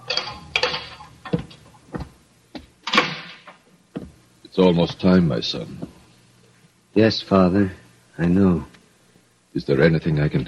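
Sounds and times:
footsteps echoing in corridor: 1.3 - 2.8, 3.9 - 4.2
speech: 4.6 - 5.8, 7.0 - 8.7, 9.6 - 10.4.

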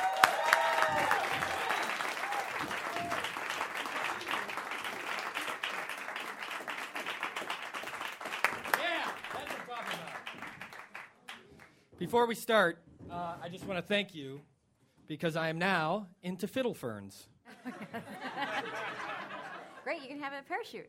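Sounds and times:
audience applause welcoming an award-winning chef onto a stage: 0.0 - 11.8
speech: 12.0 - 14.5, 15.1 - 18.9, 19.9 - 20.8
laughter: 17.5 - 20.0.

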